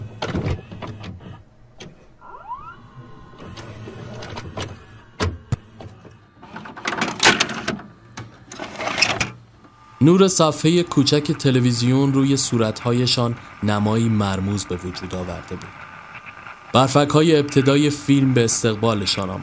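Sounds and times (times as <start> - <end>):
videotape plastic clicks and clunks in a VCR: 0.0 - 2.0, 3.5 - 9.4
VCR motor whirring: 0.0 - 19.4
speech: 10.0 - 15.9, 16.7 - 19.4.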